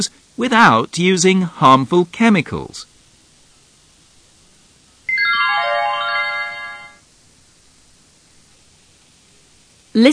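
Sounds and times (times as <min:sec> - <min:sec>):
speech: 0:00.0 - 0:02.9, 0:10.0 - 0:10.1
telephone ringing with electronic ringtone: 0:05.1 - 0:07.0.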